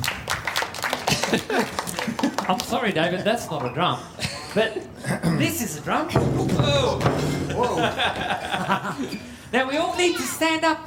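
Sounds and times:
audience clapping: 0.0s - 3.2s
laughter: 0.9s - 3.4s, 4.0s - 5.4s, 6.8s - 9.4s
speech: 2.5s - 10.8s.

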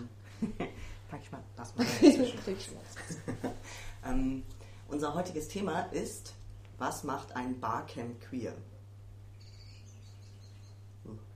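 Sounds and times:
speech: 0.4s - 8.7s
bird chirping agitatedly outdoors: 9.3s - 11.0s.

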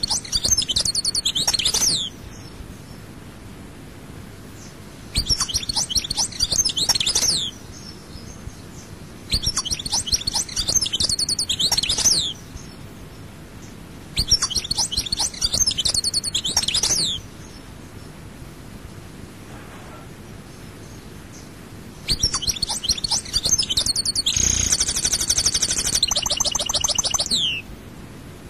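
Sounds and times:
European goldfinch twittering song: 0.0s - 3.0s, 4.6s - 12.9s, 13.6s - 17.7s, 20.5s - 27.6s.

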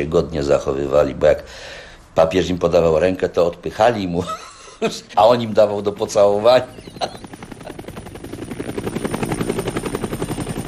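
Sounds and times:
speech: 0.0s - 7.2s
papal helicopter taking off: 5.0s - 10.6s.

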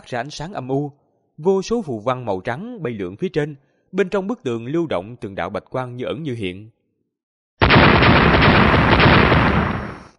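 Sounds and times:
speech: 0.1s - 6.8s
explosive blasts as magical weapons strike an ice wall: 7.6s - 10.1s.

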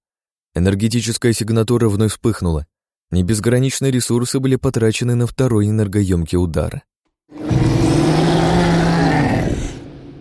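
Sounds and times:
speech: 0.6s - 7.4s
mutant monster roaring: 7.3s - 10.1s.

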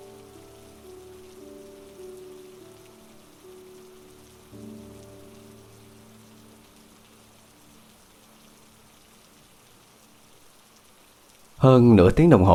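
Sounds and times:
heavy rain falling: 0.0s - 12.5s
speech: 11.6s - 12.5s.

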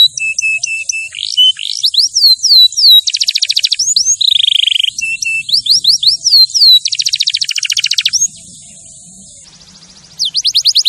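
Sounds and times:
canary song: 0.0s - 10.8s.

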